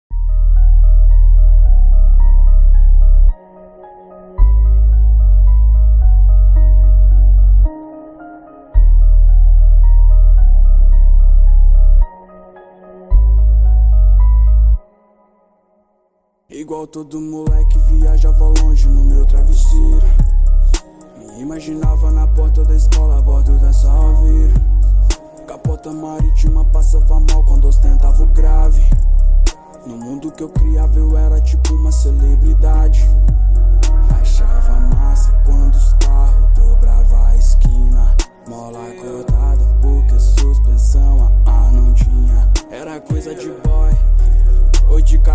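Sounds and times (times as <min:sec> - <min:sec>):
deep bass: 0:00.0 - 0:03.4, 0:04.4 - 0:07.7, 0:08.8 - 0:12.1, 0:13.1 - 0:14.8, 0:17.5 - 0:20.8, 0:21.8 - 0:25.2, 0:26.2 - 0:29.5, 0:30.6 - 0:38.3, 0:39.3 - 0:42.6, 0:43.7 - 0:45.3.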